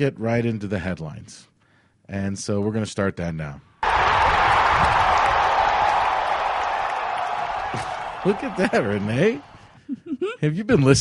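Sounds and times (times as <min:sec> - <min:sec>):
speech: 0:00.0 - 0:01.5, 0:02.1 - 0:03.7, 0:07.7 - 0:11.0
crowd noise sound effect: 0:03.8 - 0:09.8
laughter: 0:07.6 - 0:10.6.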